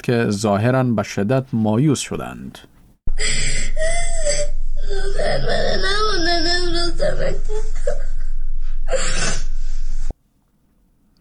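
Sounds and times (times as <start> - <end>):
speech: 0.0 - 3.8, 5.2 - 8.0
girl crying and wailing in Afghanistan: 3.1 - 9.5.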